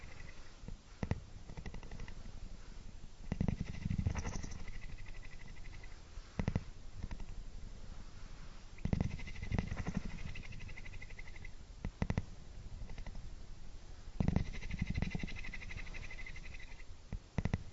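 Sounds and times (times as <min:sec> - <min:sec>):
cat purring: 0:00.0 - 0:07.4, 0:08.8 - 0:13.3, 0:14.2 - 0:17.7.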